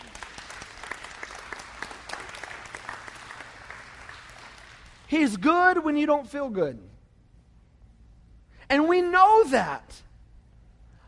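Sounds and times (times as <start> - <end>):
people clapping: 0.0 - 5.5
speech: 5.1 - 6.9, 8.7 - 10.0.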